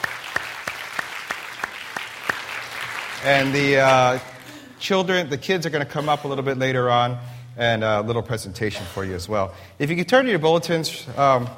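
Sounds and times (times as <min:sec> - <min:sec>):
audience applause: 0:00.0 - 0:04.7
speech: 0:03.2 - 0:11.5.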